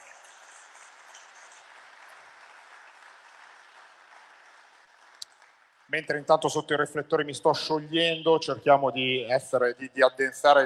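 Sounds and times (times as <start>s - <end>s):
applause: 0.0s - 6.9s
speech: 5.9s - 10.6s.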